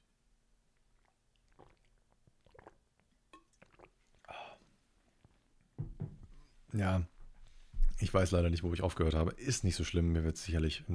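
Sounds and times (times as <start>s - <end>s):
person taking a short sip of a drink: 0.8s - 5.4s
speech: 6.7s - 7.1s, 8.0s - 10.9s.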